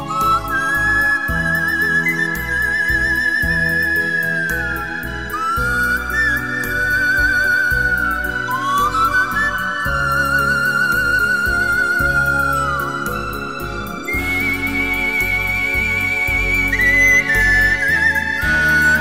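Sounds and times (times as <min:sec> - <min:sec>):
lonely flute melody: 0:00.0 - 0:18.9.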